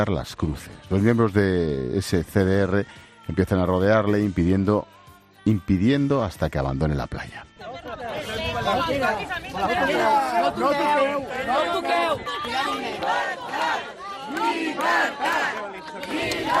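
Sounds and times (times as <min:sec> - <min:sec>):
speech: 0:00.0 - 0:13.4
crowd shouting freedom chants: 0:07.6 - 0:16.5.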